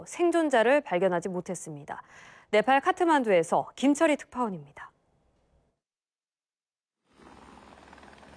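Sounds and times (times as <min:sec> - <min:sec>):
speech: 0:00.0 - 0:04.9
helicopter flying overhead: 0:07.1 - 0:08.3.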